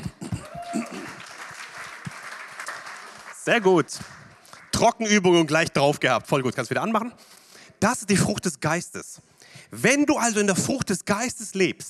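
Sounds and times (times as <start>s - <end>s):
audience applause: 0.4s - 4.8s
speech: 3.4s - 4.2s, 4.8s - 11.8s.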